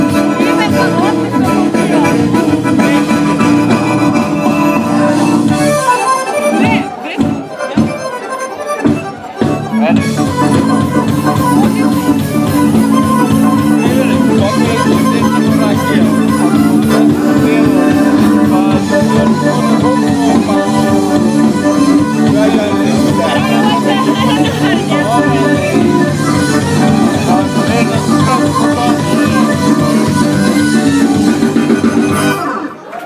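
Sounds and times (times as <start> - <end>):
Serbian jazz electronica music: 0.0 - 32.8.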